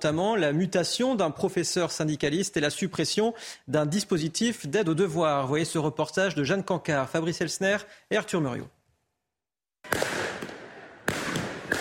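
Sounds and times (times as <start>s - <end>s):
speech: 0.0s - 8.8s
firework mortars fired at police outside a high school: 9.9s - 11.8s.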